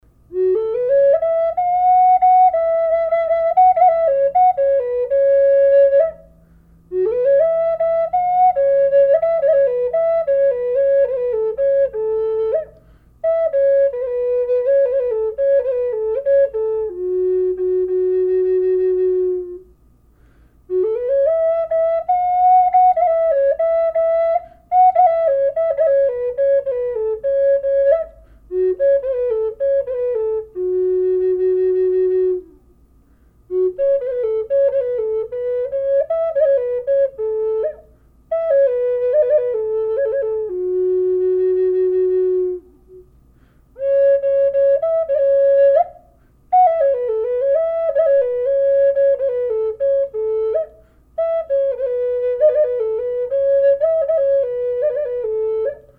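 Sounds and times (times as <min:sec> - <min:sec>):
California bear flute: 0:00.3 - 0:19.7, 0:20.7 - 0:32.6, 0:33.4 - 0:55.9.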